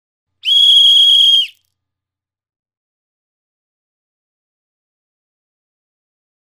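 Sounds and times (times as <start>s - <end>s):
whistle: 0.4s - 1.6s.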